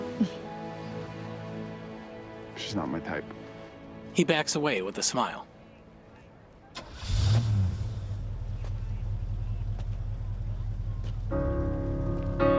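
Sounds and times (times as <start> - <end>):
speech: 0.2 - 0.5, 2.7 - 3.5, 4.2 - 5.5
car engine starting and running: 6.7 - 12.4.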